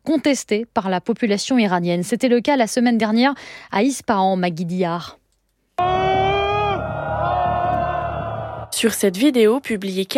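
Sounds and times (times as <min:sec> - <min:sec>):
speech: 0:00.1 - 0:05.2, 0:08.8 - 0:10.1
crowd of protesters shouting: 0:05.8 - 0:08.8.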